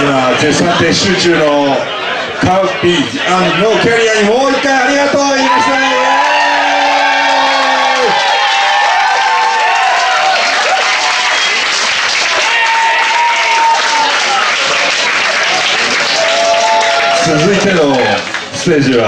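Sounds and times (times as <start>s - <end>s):
laughter: 0.0s - 6.1s, 13.9s - 18.4s
speech: 0.4s - 5.8s, 17.3s - 19.0s
loud sustained applause from a large crowd: 1.6s - 19.0s
overlapping voices: 4.9s - 19.0s
scattered cheers and whoops: 5.3s - 18.2s.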